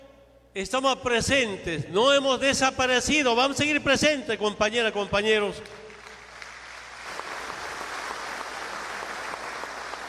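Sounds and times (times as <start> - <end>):
speech: 0.6 - 5.8
audience applause: 6.0 - 10.0.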